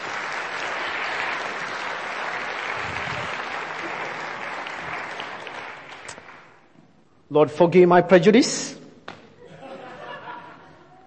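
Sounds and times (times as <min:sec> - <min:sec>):
audience applause: 0:00.0 - 0:06.6
speech: 0:07.3 - 0:08.8
laughter: 0:09.4 - 0:11.0.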